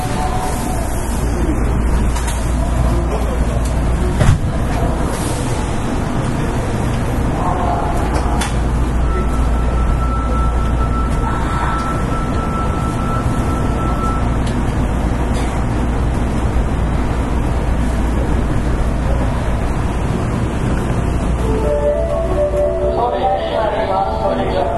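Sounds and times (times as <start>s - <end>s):
Kita-Osaka Kyuko 9000 series train on the Osaka Midosuji subway line: 0.0s - 24.7s.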